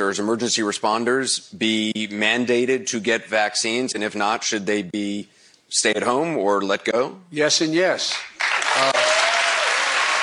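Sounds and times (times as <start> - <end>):
speech: 0.0 - 9.2
audience applause: 8.4 - 10.2.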